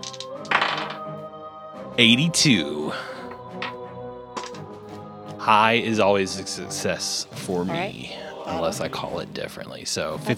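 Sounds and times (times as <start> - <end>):
large dice clattering across a hard surface: 0.0 - 1.1, 3.3 - 3.8, 4.4 - 4.6
speech: 2.0 - 3.1, 5.5 - 10.3.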